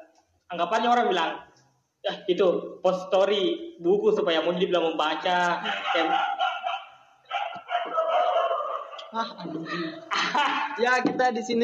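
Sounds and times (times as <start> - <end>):
speech: 0.5 - 6.3, 9.1 - 11.6
dogs barking: 5.5 - 10.7
laughter: 5.6 - 11.2.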